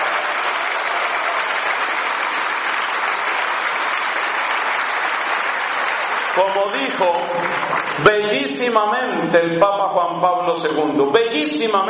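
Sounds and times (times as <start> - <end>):
audience applause: 0.0 - 8.6
speech: 6.4 - 11.8.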